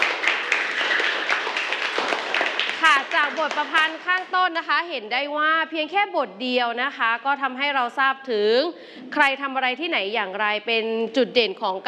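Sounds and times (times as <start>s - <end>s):
group of students clapping in a classroom: 0.0s - 4.6s
speech: 3.2s - 11.8s.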